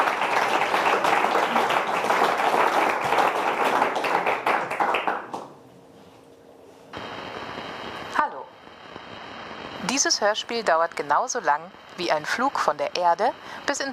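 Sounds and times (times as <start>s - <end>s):
audience applause: 0.0s - 5.5s
speech: 10.0s - 13.9s.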